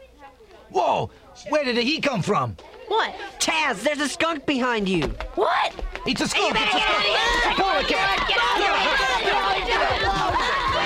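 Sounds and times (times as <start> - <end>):
speech: 0.7 - 10.2
people running over chairs and tables: 4.1 - 10.8
panicked crowd shouting and screaming: 5.4 - 10.8.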